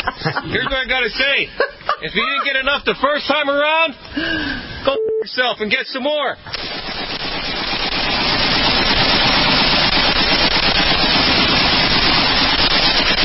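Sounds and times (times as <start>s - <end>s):
laughter: 0.0s - 3.2s
speech: 0.2s - 6.6s
machine gun fire: 6.5s - 13.2s.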